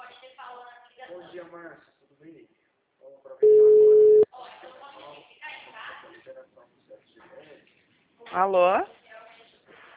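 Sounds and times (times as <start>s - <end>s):
speech: 1.1s - 2.6s, 6.3s - 9.0s
phone line tone after a dropped call: 3.4s - 4.2s.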